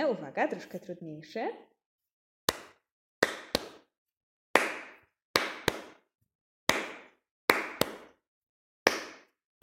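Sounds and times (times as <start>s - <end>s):
speech: 0.1s - 1.7s
hands clapping an uneven rhythm: 2.5s - 3.9s, 4.6s - 6.1s, 6.7s - 8.2s, 8.8s - 9.6s.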